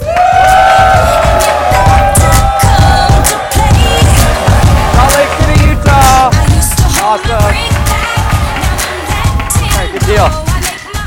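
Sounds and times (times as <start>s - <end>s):
whoops and yells: 0.0s - 3.8s
crowd applauding: 0.0s - 10.7s.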